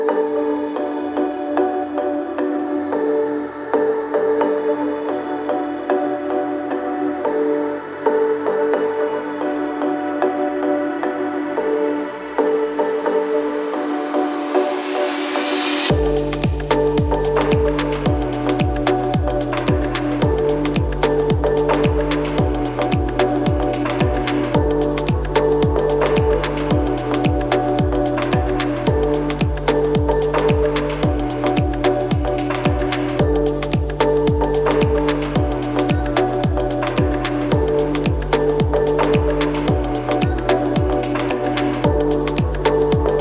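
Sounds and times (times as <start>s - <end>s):
electro dance music: 0.2s - 43.2s.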